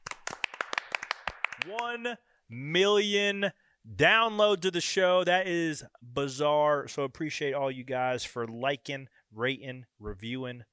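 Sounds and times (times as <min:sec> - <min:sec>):
applause: 0:00.0 - 0:02.1
voice cheering: 0:01.6 - 0:02.2
speech: 0:01.6 - 0:10.7.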